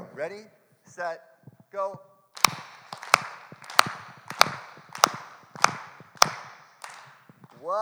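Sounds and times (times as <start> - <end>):
speech: 0.2 - 2.6, 7.6 - 7.8
crowd clapping in unison: 2.4 - 7.8.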